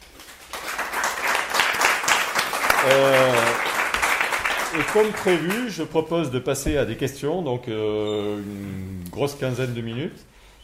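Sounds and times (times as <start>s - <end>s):
audience applause: 0.0s - 5.8s
short voiced call or cheer: 2.7s - 3.6s
speech: 2.8s - 3.6s, 4.8s - 10.3s.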